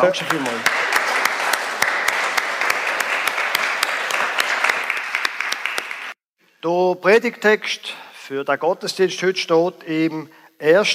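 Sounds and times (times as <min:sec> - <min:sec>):
speech: 0:00.0 - 0:00.9, 0:06.6 - 0:10.9
audience applause: 0:00.0 - 0:06.2.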